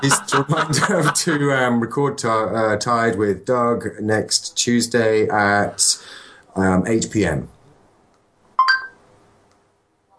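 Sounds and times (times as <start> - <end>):
laughter: 0.0 - 1.9
speech: 0.0 - 7.6
faint hiss: 0.0 - 10.1
phone voice assistant activation chime: 8.6 - 8.9.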